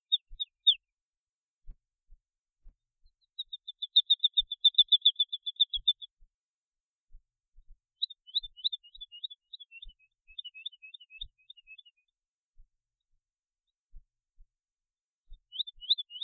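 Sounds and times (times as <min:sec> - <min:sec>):
Woodlark singing: 0:03.2 - 0:06.1, 0:08.0 - 0:12.1, 0:15.4 - 0:16.2.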